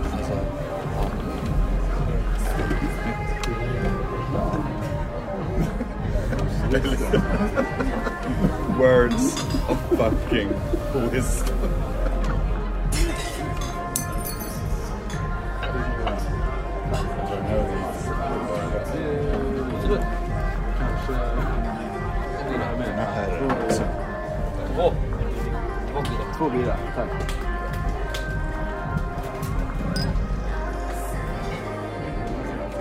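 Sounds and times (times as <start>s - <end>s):
bar babble of many voices: 0.0s - 32.8s
laughter: 5.3s - 13.2s
glasses and dishes clinking: 9.1s - 9.8s, 13.0s - 16.2s, 29.9s - 30.2s.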